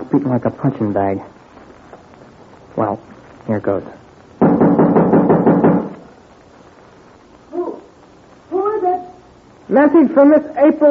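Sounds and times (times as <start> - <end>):
speech: 0.1 - 1.4, 2.8 - 4.0, 9.7 - 10.9
knocking on a door: 4.4 - 6.0.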